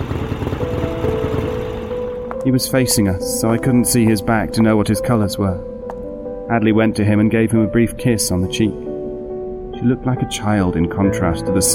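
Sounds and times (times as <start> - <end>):
motorcycle engine arriving: 0.0 - 5.2
speech: 2.4 - 5.7, 6.5 - 8.8, 9.8 - 11.7.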